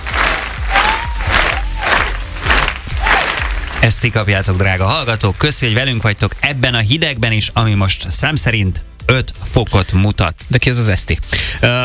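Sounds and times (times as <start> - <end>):
applause: 0.0 - 7.0
speech: 3.8 - 11.8.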